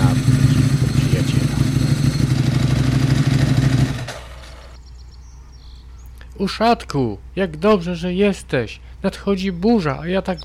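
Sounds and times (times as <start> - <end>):
motorcycle arriving: 0.0 - 5.0
speech: 6.4 - 10.4.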